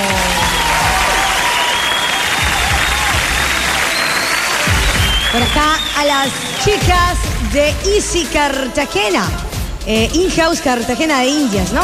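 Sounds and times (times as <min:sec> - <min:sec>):
audience applause: 0:00.0 - 0:07.4
speech: 0:05.4 - 0:11.8.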